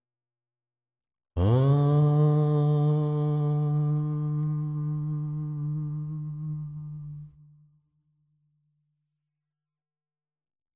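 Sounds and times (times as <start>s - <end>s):
mantra sung as bhajan: 1.4s - 7.4s.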